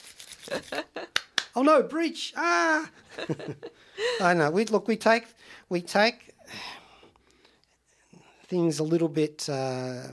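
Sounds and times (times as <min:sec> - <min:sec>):
rubber gloves clapping together: 0:00.4 - 0:01.7
laughter: 0:00.5 - 0:01.2, 0:02.9 - 0:04.3
speech: 0:00.5 - 0:06.8, 0:08.5 - 0:10.1.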